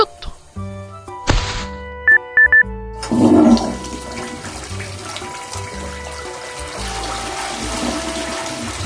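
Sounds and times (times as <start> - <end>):
short electronic beeps: 2.1 - 2.7
toilet flushing: 3.0 - 8.8.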